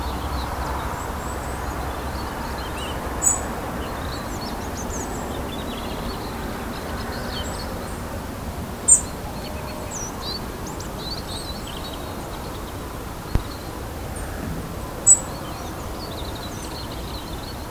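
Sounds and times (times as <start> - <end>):
birds: 0.0 - 17.6.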